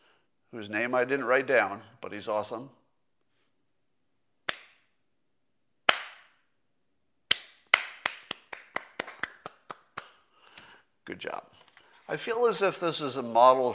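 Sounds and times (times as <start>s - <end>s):
speech: 0.5s - 2.8s, 11.1s - 13.7s
slow clap for the CEO of Goya Foods: 5.9s - 6.3s, 7.3s - 10.8s.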